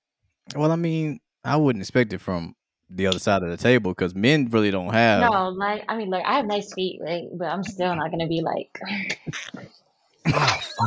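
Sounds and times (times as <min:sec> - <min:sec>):
speech: 0:00.5 - 0:10.8
sneeze: 0:10.2 - 0:10.8.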